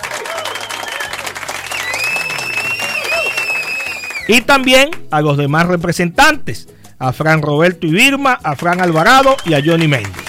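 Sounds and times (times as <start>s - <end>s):
applause: 0.0s - 5.0s, 8.5s - 10.2s
speech: 4.3s - 10.2s.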